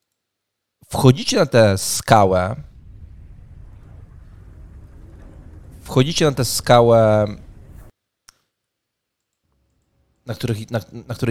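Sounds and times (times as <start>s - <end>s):
speech: 0.9s - 2.7s, 6.0s - 7.4s, 10.3s - 11.2s
crackling campfire: 2.1s - 8.0s.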